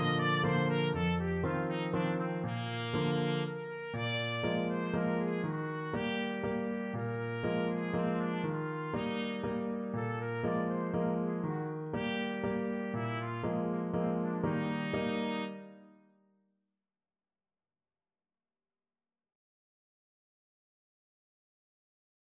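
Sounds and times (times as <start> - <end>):
trumpet playing waltzes: 0.0 - 16.0.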